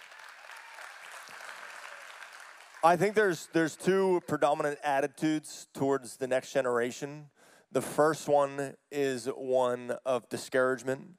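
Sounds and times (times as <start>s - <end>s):
audience clapping: 0.0s - 4.2s
speech: 2.8s - 11.1s.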